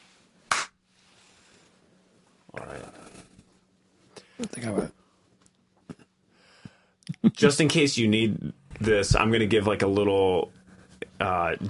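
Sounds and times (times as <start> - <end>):
hand clap: 0.5 - 0.8
speech: 4.4 - 5.0, 7.4 - 10.6, 11.2 - 11.6.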